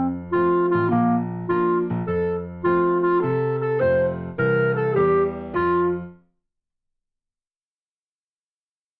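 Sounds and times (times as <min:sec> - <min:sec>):
jazz clarinet etude: 0:00.0 - 0:06.2.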